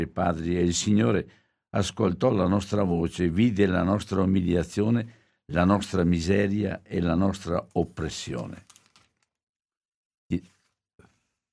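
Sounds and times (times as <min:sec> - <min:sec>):
speech: 0:00.0 - 0:08.7, 0:10.3 - 0:10.5
very thin paper page being turned: 0:08.4 - 0:09.3.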